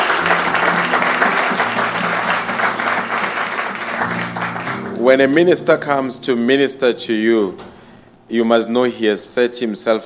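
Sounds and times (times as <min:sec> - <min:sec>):
audience round of applause: 0:00.0 - 0:05.5
speech: 0:05.0 - 0:07.7, 0:08.3 - 0:10.0.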